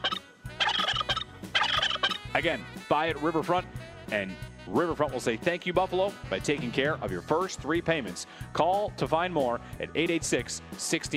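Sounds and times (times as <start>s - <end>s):
turkey gobbling: 0.0s - 2.3s
speech: 2.3s - 11.1s.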